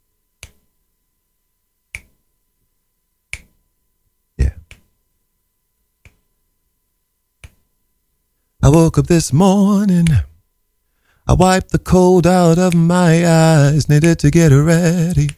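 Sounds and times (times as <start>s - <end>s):
finger snapping: 0.4s - 0.6s, 1.9s - 2.2s, 3.3s - 3.6s, 4.6s - 4.9s, 7.4s - 7.6s, 10.0s - 10.2s, 15.1s - 15.3s
speech: 8.7s - 10.3s, 11.3s - 15.3s.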